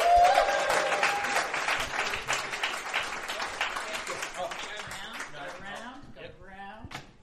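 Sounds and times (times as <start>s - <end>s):
audience applause: 0.0s - 5.6s.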